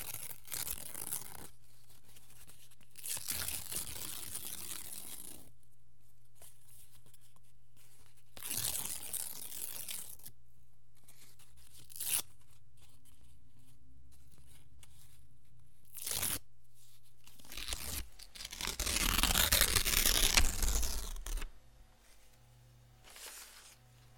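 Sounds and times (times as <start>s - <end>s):
paper rustling: 17.4s - 22.4s, 23.0s - 24.1s.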